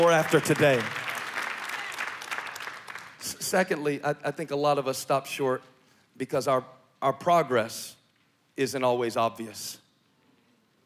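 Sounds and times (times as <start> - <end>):
speech: 0.0 - 1.0, 3.5 - 8.0, 8.6 - 9.8
audience clapping: 0.0 - 3.4.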